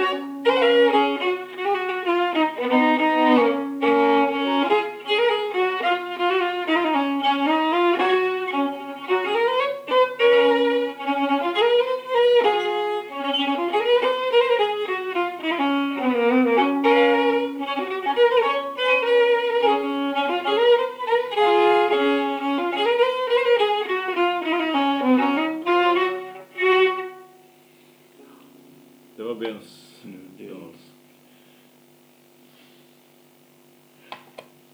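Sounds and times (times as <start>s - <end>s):
folk polka on violin: 0.0s - 27.5s.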